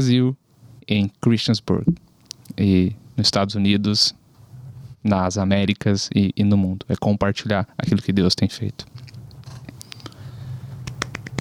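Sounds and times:
speech: 0.0 - 4.2, 5.0 - 9.1
hands clapping: 10.8 - 11.4.

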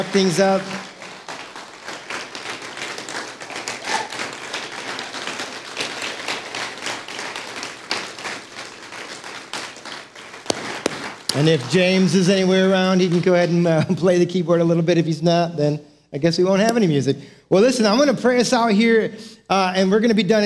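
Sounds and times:
speech: 0.0 - 0.9, 11.4 - 20.4
audience clapping hands: 0.0 - 13.7.

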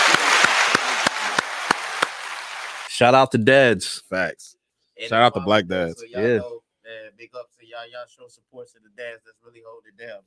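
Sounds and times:
group applause: 0.0 - 2.9
sharp evenly spaced claps: 0.0 - 2.9
speech: 3.0 - 10.2.

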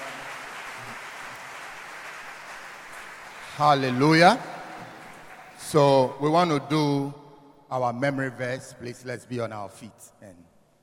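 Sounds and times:
crowd clapping: 0.0 - 5.8
speech: 3.6 - 4.5, 5.6 - 10.5.

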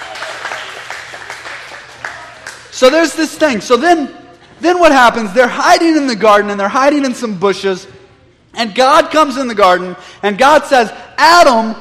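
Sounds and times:
audience applause thanking volunteers during a Bible lesson: 0.0 - 2.7
speech: 2.8 - 11.7.

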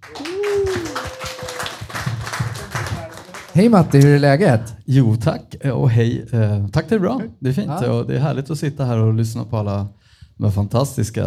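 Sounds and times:
applause: 0.0 - 3.8
speech: 3.6 - 11.2.

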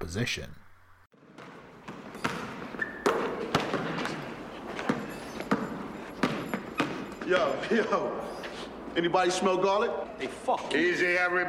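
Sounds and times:
speech: 0.0 - 0.6, 7.3 - 8.4, 9.0 - 11.4
basketball bouncing in a gym: 1.2 - 7.5.

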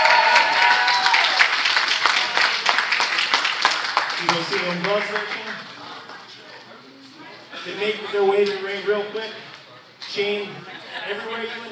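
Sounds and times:
audience applause: 0.0 - 6.3
faint crowd noise: 1.5 - 11.6
speech: 4.5 - 5.4, 7.6 - 9.5, 10.1 - 11.6
laughter: 10.6 - 11.6.

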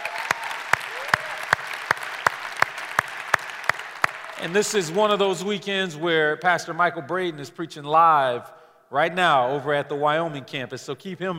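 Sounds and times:
audience applause: 0.0 - 5.0
speech: 4.4 - 11.3.

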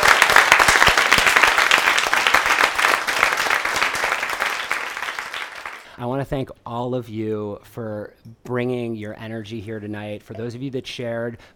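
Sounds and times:
audience applause: 0.0 - 5.9
speech: 6.0 - 11.5.

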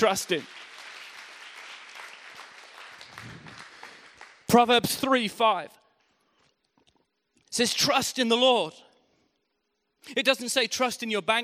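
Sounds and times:
speech: 0.0 - 0.6, 4.5 - 5.8, 7.5 - 8.8, 10.0 - 11.4
crowd applauding: 0.0 - 4.6.

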